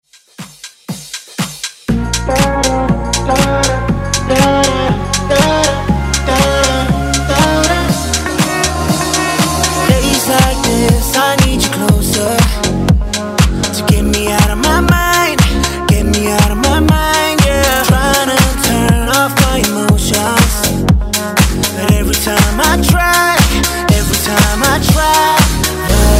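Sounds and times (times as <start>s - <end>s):
house music intro: 0.1s - 26.1s.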